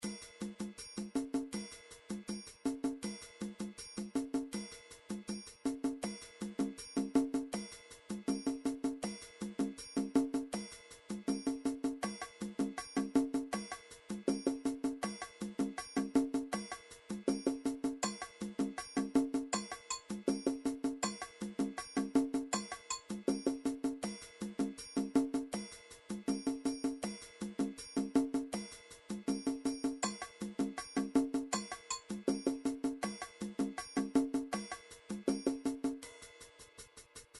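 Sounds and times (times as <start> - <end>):
fanga drums: 0.0 - 37.3.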